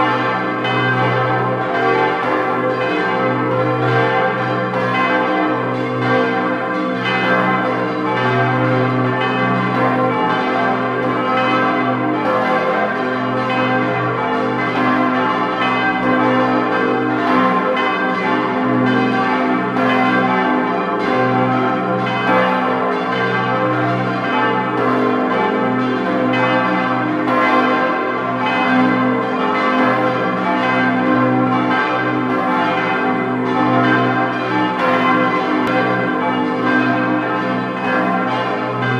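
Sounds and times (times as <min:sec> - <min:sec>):
bells ringing: 0:00.0 - 0:38.9.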